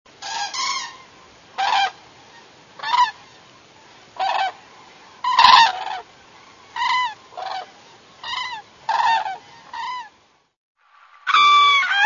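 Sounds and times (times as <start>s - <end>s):
bird honking: 0.2s - 3.4s, 4.2s - 4.6s, 5.2s - 6.0s, 6.8s - 10.1s.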